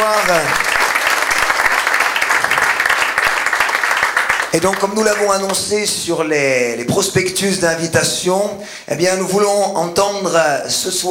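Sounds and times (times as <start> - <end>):
audience applause: 0.0 - 5.6
speech: 0.3 - 0.7, 4.5 - 11.0.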